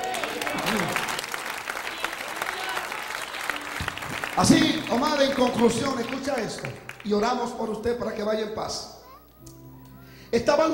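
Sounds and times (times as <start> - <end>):
audience applause: 0.0 - 7.4
speech: 4.4 - 8.9, 10.3 - 10.7.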